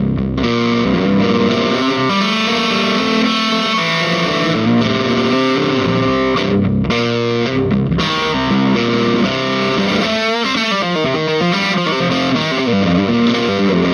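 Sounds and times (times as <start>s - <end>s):
baritone guitar grinding through a Swart Super Space Tone 30 amplifier: 0.0s - 13.9s.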